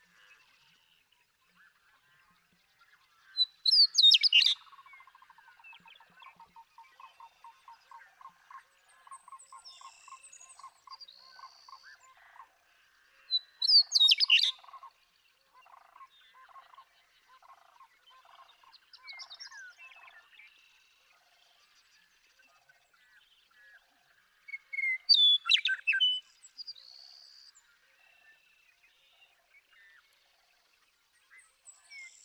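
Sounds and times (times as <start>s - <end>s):
western meadowlark gurgling whistled song: 3.2s - 8.3s, 8.9s - 12.2s, 13.2s - 22.0s, 24.4s - 32.2s.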